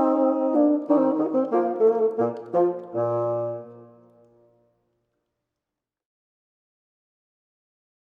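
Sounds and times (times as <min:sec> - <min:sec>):
bassoon playing classical music: 0:00.0 - 0:04.4.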